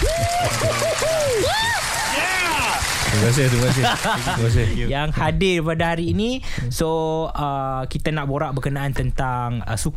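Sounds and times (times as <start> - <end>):
voices whooping and calling out: 0.0 - 2.9
crowd applause: 0.0 - 4.7
laughter: 3.2 - 4.8
speech: 3.2 - 9.9.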